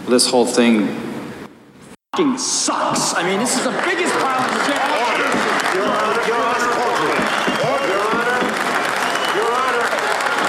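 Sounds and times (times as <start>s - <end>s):
speech: 0.1s - 1.1s, 2.2s - 7.2s
police officers cheering: 2.2s - 10.4s.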